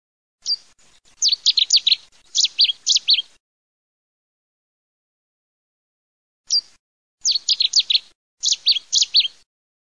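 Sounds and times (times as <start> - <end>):
Cetti's warbler song: 0.4 - 3.4, 6.5 - 9.5.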